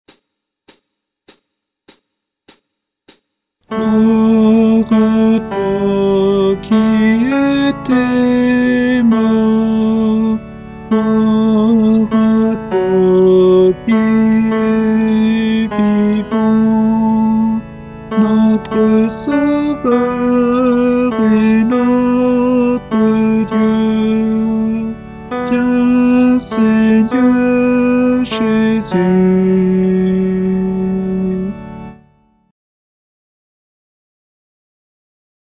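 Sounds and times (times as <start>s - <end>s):
tenor guide chant of a mass anamnesis: 3.7s - 31.5s.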